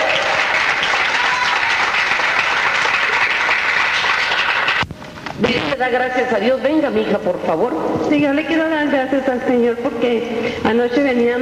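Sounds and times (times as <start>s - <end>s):
audience applauding loudly: 0.0s - 4.9s
speech: 5.8s - 11.4s.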